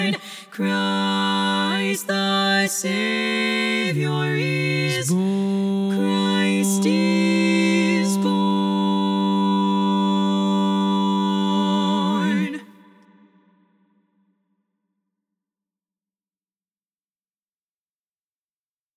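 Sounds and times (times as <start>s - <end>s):
lead voice singing a carol for SSAA choir: 0.0s - 13.1s.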